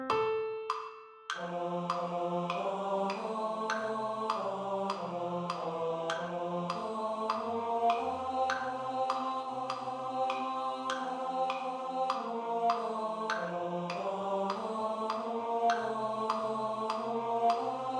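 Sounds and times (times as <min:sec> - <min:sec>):
tenor study: 0:00.1 - 0:17.9.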